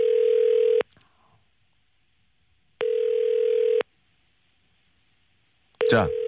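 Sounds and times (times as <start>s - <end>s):
telephone line tones while a call connects: 0.0s - 0.8s, 2.8s - 3.8s, 5.8s - 6.2s
speech: 6.0s - 6.2s.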